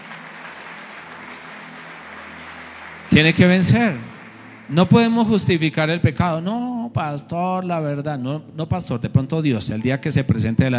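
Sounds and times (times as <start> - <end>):
audience applause: 0.0 - 5.8
speech: 3.2 - 4.1, 4.7 - 10.7.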